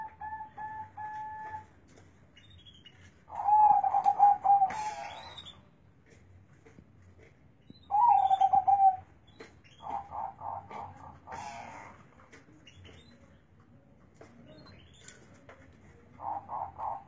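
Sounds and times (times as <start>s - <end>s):
zebra dove perkutut bubbling coo phrase: 3.3s - 5.3s, 7.9s - 9.0s, 9.8s - 12.0s, 16.2s - 17.0s.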